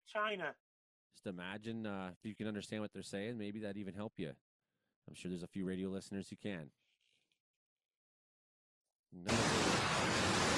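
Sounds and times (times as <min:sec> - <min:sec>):
speech: 0:00.1 - 0:04.4, 0:05.0 - 0:06.8, 0:09.1 - 0:10.2
roaring torrent of flood water: 0:09.3 - 0:10.5.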